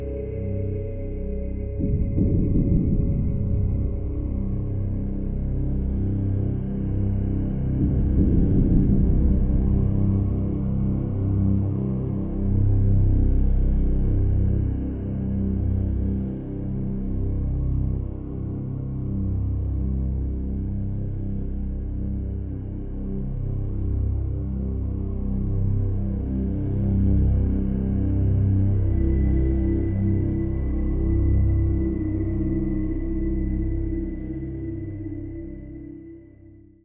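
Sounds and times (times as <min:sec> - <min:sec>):
ambient music theme: 0:00.0 - 0:36.7.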